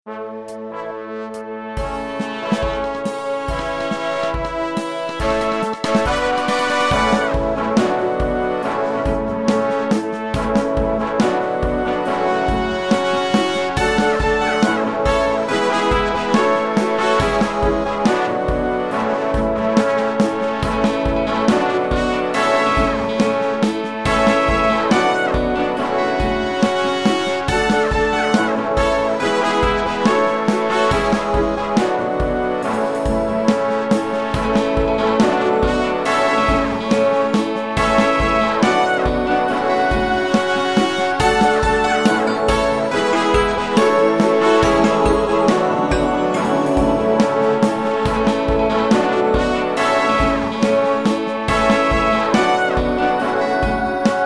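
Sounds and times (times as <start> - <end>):
brass section playing: 0.1 - 54.2.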